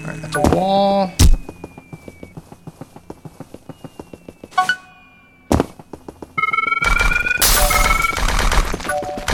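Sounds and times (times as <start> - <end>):
speech: 0.2 - 1.2
video game bomb explosions: 6.8 - 9.2.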